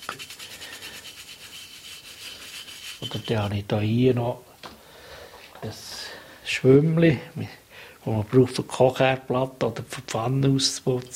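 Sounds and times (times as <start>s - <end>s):
small toothbrush scrubbing a garden gnome: 0.0s - 3.5s
speech: 3.0s - 4.5s, 5.6s - 5.9s, 6.6s - 11.1s.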